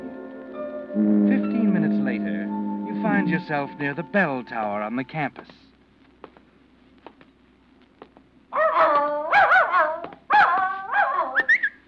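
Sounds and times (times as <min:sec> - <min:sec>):
speech: 0:01.0 - 0:02.2, 0:03.0 - 0:05.7
dog barking: 0:08.5 - 0:11.7.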